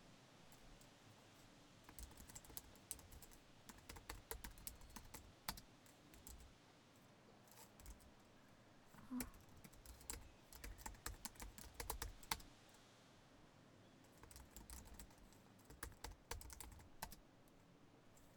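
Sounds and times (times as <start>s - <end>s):
working at a PC: 1.9s - 6.5s, 7.7s - 8.1s, 9.1s - 12.4s, 14.1s - 17.2s.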